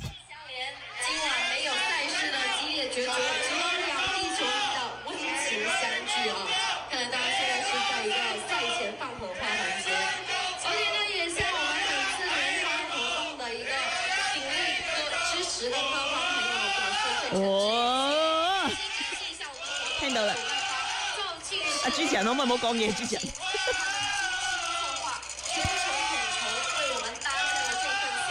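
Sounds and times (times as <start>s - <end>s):
live event crowd chattering, shouting and singing: 0.0s - 28.3s
laughter: 11.9s - 28.3s
speech: 22.0s - 23.5s.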